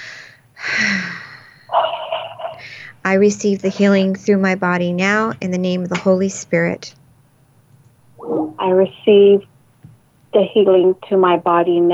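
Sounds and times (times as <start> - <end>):
deep breath during a guided healing prayer: 0.0 - 1.7
speech: 3.1 - 7.0, 8.3 - 9.5, 10.3 - 11.9.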